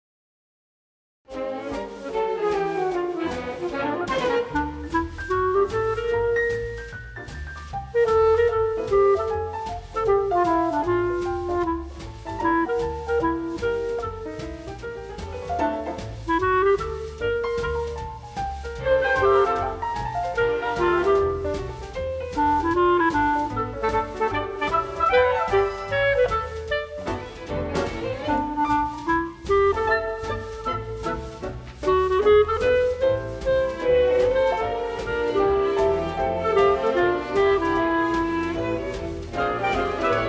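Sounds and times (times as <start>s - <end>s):
clarinet: 1.3s - 40.2s.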